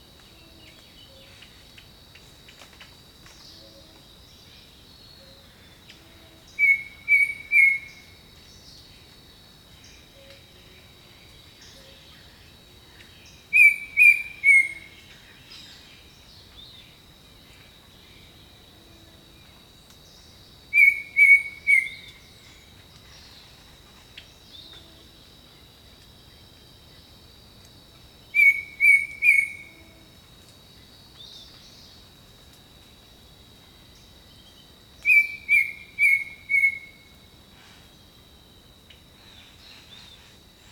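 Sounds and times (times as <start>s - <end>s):
insects droning: 0.0s - 40.7s
bird whistling: 6.6s - 7.9s, 13.6s - 14.8s, 20.8s - 22.1s, 28.4s - 29.7s, 35.1s - 37.0s.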